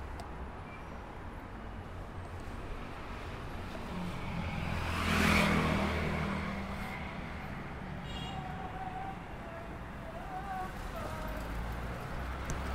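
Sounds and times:
steady low traffic rumble: 0:00.0 - 0:12.7
vehicle passing: 0:03.8 - 0:07.6.

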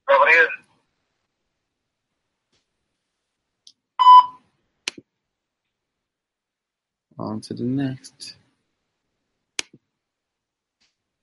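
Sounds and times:
recorded voice: 0:00.0 - 0:00.7, 0:07.2 - 0:08.4
voicemail beep on a phone call: 0:04.0 - 0:04.4
speech: 0:07.2 - 0:08.4.

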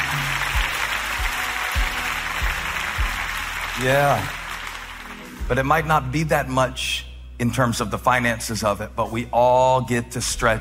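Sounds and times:
audience clapping: 0:00.0 - 0:05.5
speech: 0:03.8 - 0:04.4, 0:05.5 - 0:10.5.

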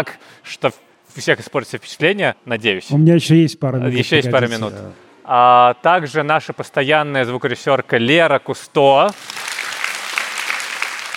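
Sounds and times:
speech: 0:00.0 - 0:09.4
audience applause: 0:09.1 - 0:11.1.

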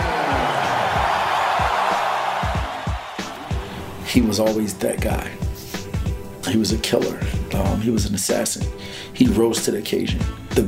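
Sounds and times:
arena crowd cheering: 0:00.0 - 0:04.8
speech: 0:04.1 - 0:05.4, 0:06.5 - 0:10.6.

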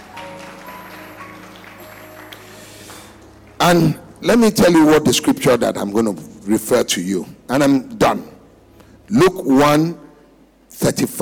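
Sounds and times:
audience clapping: 0:00.0 - 0:04.6
speech: 0:03.6 - 0:08.3, 0:09.1 - 0:10.0, 0:10.7 - 0:11.2.

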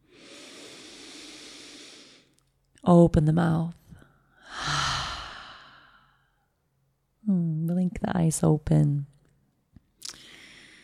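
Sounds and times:
big slow breath in during a guided breathing practice: 0:00.0 - 0:02.3, 0:04.4 - 0:06.4, 0:10.2 - 0:10.8
speech: 0:02.8 - 0:03.8, 0:08.1 - 0:09.2.

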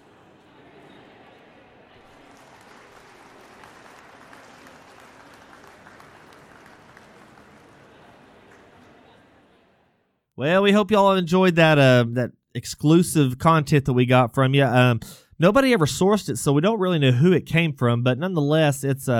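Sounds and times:
audience applause: 0:01.8 - 0:09.4
speech: 0:10.4 - 0:19.1.

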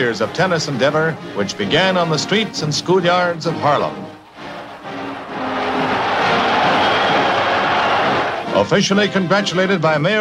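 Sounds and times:
speech: 0:00.0 - 0:04.0, 0:08.6 - 0:10.2
crowd of 100,000 cheering a tennis champion at a street welcome: 0:04.2 - 0:08.5.

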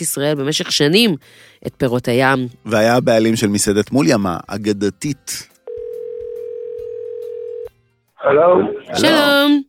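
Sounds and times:
speech: 0:00.0 - 0:05.5, 0:08.2 - 0:09.6
telephone call ringing tone: 0:05.7 - 0:07.7.

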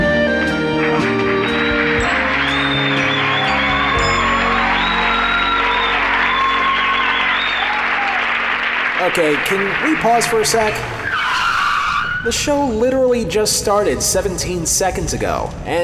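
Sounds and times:
studio audience applause: 0:00.6 - 0:11.6
bright musical tones: 0:00.8 - 0:10.9
speech: 0:09.2 - 0:11.0, 0:12.2 - 0:15.8.

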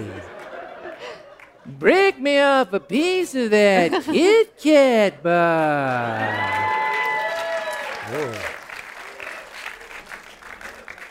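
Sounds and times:
audience applause: 0:00.0 - 0:01.6, 0:05.4 - 0:11.1
laughter: 0:00.0 - 0:06.9
speech: 0:01.6 - 0:06.7.

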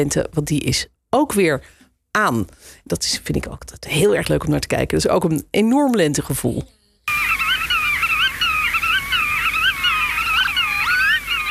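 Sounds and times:
speech: 0:00.0 - 0:07.3
black-tailed godwit calls: 0:07.1 - 0:11.5.

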